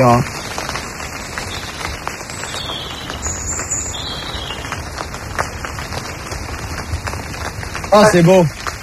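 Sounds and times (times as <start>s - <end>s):
speech: 0.0s - 0.4s, 7.9s - 8.6s
rain falling on dry leaves in forest: 0.0s - 8.8s
bird calls and chirps: 1.3s - 5.0s.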